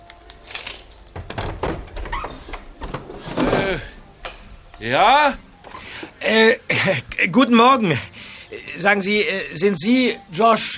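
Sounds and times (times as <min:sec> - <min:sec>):
window opening with rattling, creaky frame and latch: 0:01.2 - 0:06.3
speech: 0:03.7 - 0:03.9, 0:04.8 - 0:05.4, 0:06.2 - 0:08.1, 0:08.8 - 0:10.7.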